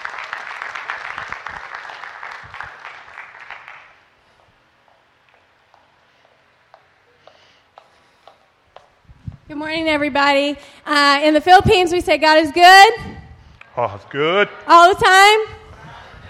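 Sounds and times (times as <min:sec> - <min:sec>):
church congregation clapping to welcome a speaker: 0:00.0 - 0:04.2
speech: 0:09.6 - 0:13.1, 0:13.8 - 0:15.6.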